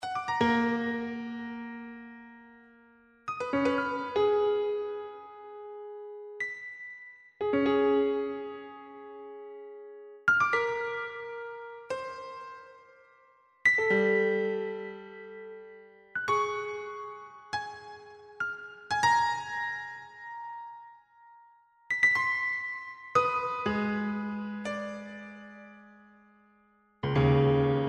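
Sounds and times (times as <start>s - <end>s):
piano: 0.0s - 27.8s.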